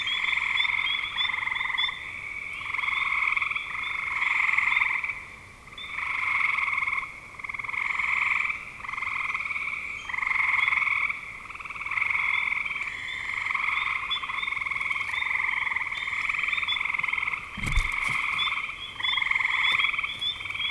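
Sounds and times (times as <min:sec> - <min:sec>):
frogs trilling in a chorus: 0:00.0 - 0:20.6
sharp knock or thump: 0:17.6 - 0:18.4.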